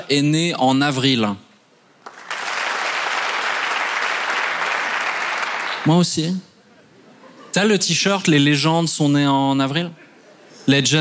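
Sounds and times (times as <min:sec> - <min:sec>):
speech: 0:00.0 - 0:01.4, 0:05.8 - 0:06.5, 0:07.6 - 0:10.0, 0:10.6 - 0:10.9
audience applause: 0:02.0 - 0:05.9.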